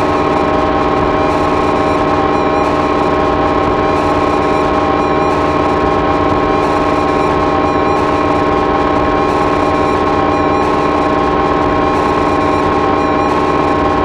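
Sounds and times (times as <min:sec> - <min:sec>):
sampler noise: 0:00.0 - 0:14.0.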